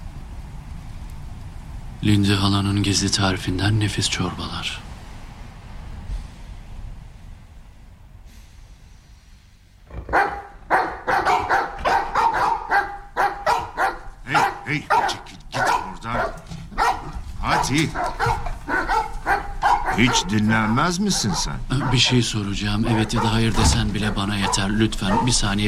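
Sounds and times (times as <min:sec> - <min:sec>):
speech: 0:02.0 - 0:04.9, 0:20.0 - 0:25.6
dogs barking: 0:09.9 - 0:25.6.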